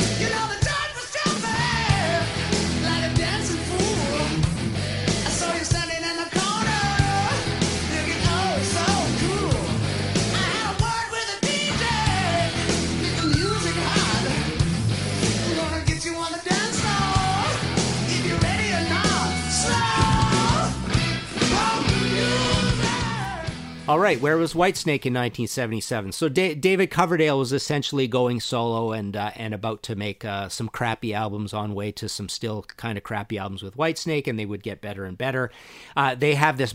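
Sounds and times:
hard rock song played from record: 0:00.0 - 0:24.3
speech: 0:23.9 - 0:36.7.

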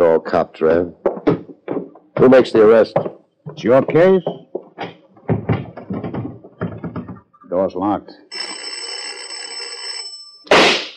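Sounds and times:
speech: 0:00.0 - 0:01.0, 0:02.2 - 0:04.4, 0:07.6 - 0:08.7
doorbell buzzing: 0:08.3 - 0:10.5
sharp crack: 0:10.5 - 0:10.9.

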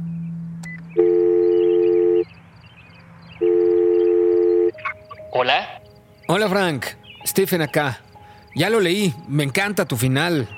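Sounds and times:
telephone call ringing tone: 0:01.0 - 0:02.2, 0:03.4 - 0:05.5
speech: 0:05.4 - 0:10.5.

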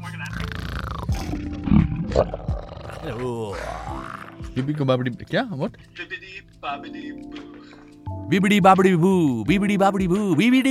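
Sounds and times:
person imitating a dragon with a growling roar: 0:00.3 - 0:01.5, 0:02.1 - 0:04.4
speech: 0:01.4 - 0:10.6.

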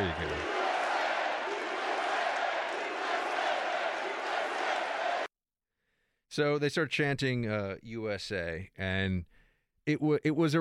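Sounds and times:
crowd booing hecklers: 0:00.0 - 0:05.3
speech: 0:06.4 - 0:10.5.

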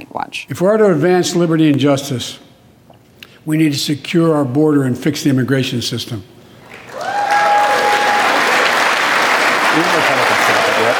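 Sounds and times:
speech: 0:00.2 - 0:02.5, 0:03.4 - 0:06.4
audience applause in Congress: 0:06.7 - 0:10.9.

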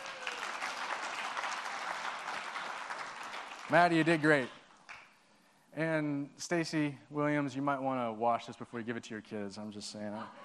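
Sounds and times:
audience applause: 0:00.0 - 0:05.0
speech: 0:03.7 - 0:04.6, 0:05.8 - 0:10.4.

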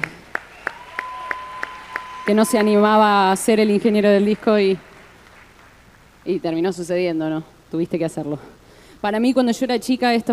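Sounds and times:
audience applause: 0:00.0 - 0:05.9
speech: 0:02.3 - 0:04.9, 0:06.3 - 0:10.3.

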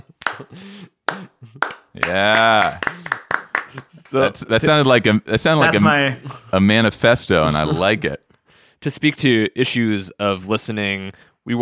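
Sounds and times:
slow clap: 0:00.0 - 0:04.3
speech: 0:00.4 - 0:02.9, 0:04.1 - 0:11.5.

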